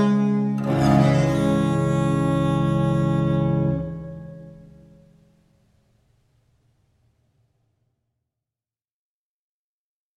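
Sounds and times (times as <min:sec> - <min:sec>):
harpsichord: 0:00.0 - 0:05.1
viola da gamba playing a courante in D minor: 0:00.0 - 0:05.1.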